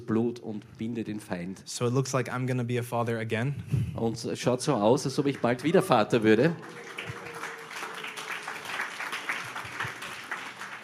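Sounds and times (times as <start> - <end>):
speech: 0.1 - 7.2
audience applause: 5.2 - 10.8.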